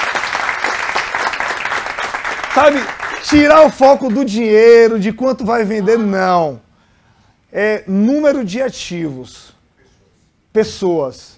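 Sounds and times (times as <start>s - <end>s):
round of applause: 0.0s - 4.3s
speech: 2.6s - 6.6s, 7.5s - 9.6s, 10.6s - 11.3s.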